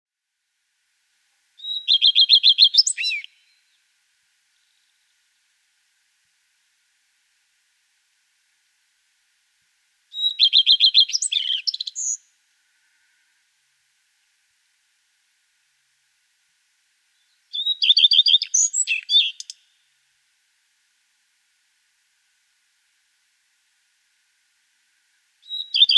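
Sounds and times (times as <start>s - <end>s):
common redstart singing: 1.6s - 3.8s, 10.1s - 12.3s, 17.2s - 19.8s, 25.4s - 25.9s.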